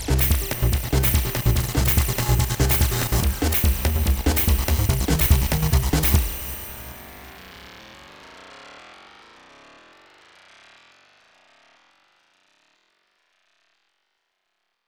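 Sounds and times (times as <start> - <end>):
creeping voltage electric buzzing: 0.2 - 7.6.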